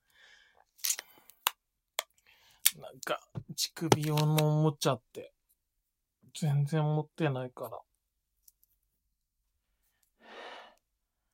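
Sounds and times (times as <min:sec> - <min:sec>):
adhesive tape torn and pressed on: 0:00.8 - 0:01.1
speech: 0:02.9 - 0:05.3, 0:06.4 - 0:07.9.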